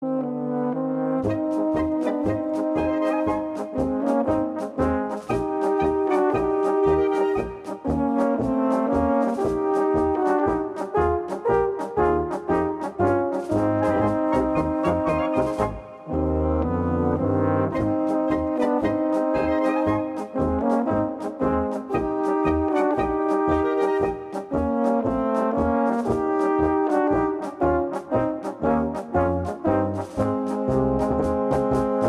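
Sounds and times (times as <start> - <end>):
polka music: 0.0 - 32.0.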